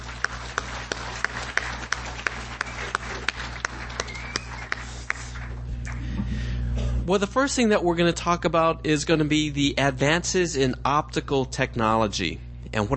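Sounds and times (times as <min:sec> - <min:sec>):
audience applause: 0:00.0 - 0:06.2
speech: 0:07.1 - 0:12.9.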